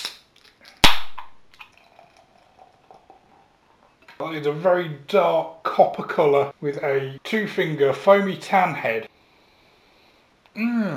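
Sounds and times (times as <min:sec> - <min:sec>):
beer can being cracked open: 0:00.0 - 0:01.8
speech: 0:04.2 - 0:09.1, 0:10.6 - 0:10.9.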